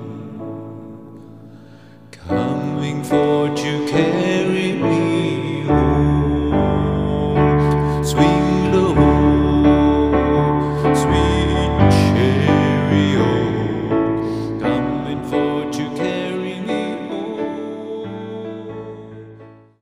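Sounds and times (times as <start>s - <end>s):
person singing: 0.0s - 19.7s
piano: 0.0s - 19.7s.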